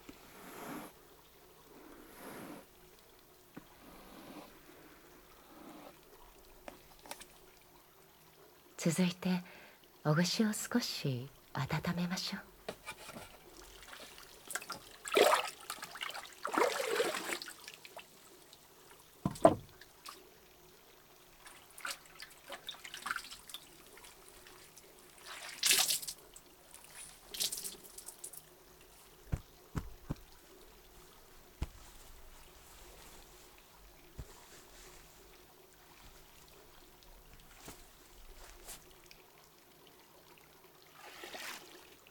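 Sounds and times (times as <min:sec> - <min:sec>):
water drips and taps: 0:04.8 - 0:07.6, 0:12.6 - 0:39.2
speech: 0:08.8 - 0:12.5
warm water splashing and pouring while rinsing hair: 0:12.8 - 0:39.1, 0:40.9 - 0:42.1.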